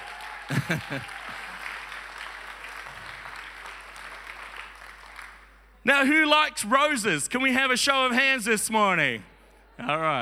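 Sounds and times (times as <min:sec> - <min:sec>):
audience clapping: 0:00.0 - 0:05.8
speech: 0:00.5 - 0:01.2, 0:05.8 - 0:10.1.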